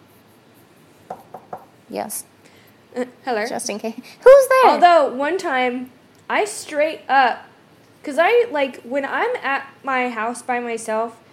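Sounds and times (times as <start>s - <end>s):
faint hiss: 0.0s - 11.3s
knocking on wood: 1.1s - 1.7s
speech: 1.9s - 2.3s, 2.9s - 11.2s.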